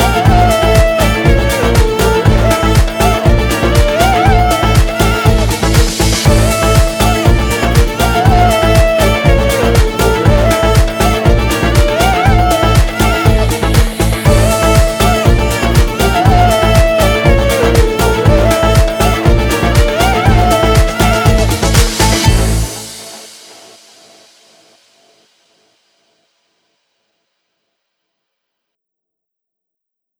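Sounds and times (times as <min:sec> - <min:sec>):
arabesk oryantal music: 0:00.0 - 0:24.0.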